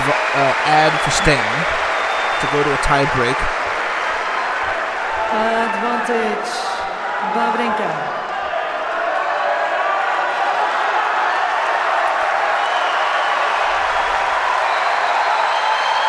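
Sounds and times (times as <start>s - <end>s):
tennis crowd roaring and cheering: 0.0s - 16.0s
speech: 0.1s - 1.8s, 2.4s - 3.6s, 5.3s - 8.3s
whoops: 9.2s - 16.0s.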